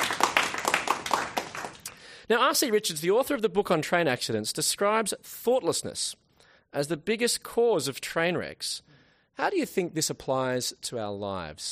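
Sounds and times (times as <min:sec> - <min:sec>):
applause: 0:00.0 - 0:02.0
speech: 0:02.3 - 0:11.6.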